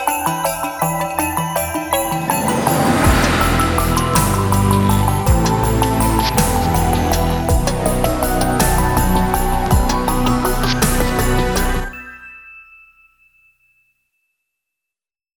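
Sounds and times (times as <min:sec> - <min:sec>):
bells: 0:00.0 - 0:14.0
breakbeat drums: 0:02.3 - 0:11.8.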